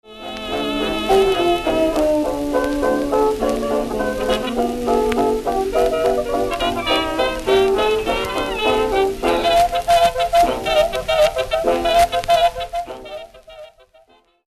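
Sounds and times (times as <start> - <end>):
hot jazz music: 0.0 - 14.4.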